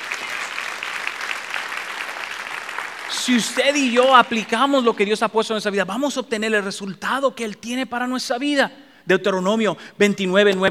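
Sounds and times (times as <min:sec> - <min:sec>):
audience applause: 0:00.0 - 0:05.1
speech: 0:03.2 - 0:10.7.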